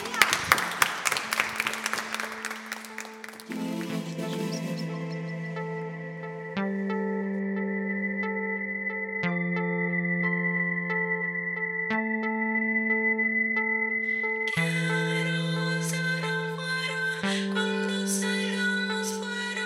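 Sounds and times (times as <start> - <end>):
audience applause: 0.0 - 4.5
sustained electronic chords: 1.8 - 19.6
steady low tone: 3.5 - 18.0.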